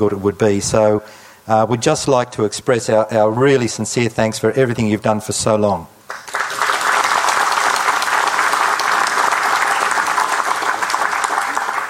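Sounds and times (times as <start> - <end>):
speech: 0.0 - 6.0
audience applause: 6.1 - 11.8.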